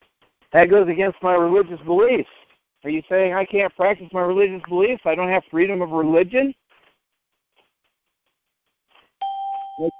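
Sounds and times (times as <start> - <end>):
speech: 0.5 - 6.6
electronic notification ding of someone joining: 9.2 - 9.9.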